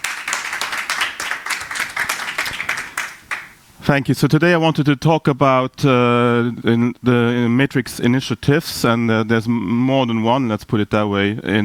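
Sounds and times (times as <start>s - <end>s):
audience applause: 0.0s - 3.6s
speech: 3.9s - 11.6s.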